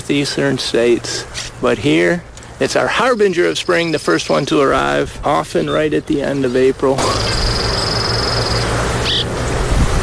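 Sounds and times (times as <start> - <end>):
speech: 0.1 - 7.5
cliff swallows calling at mud nests: 3.0 - 4.8, 5.5 - 9.4.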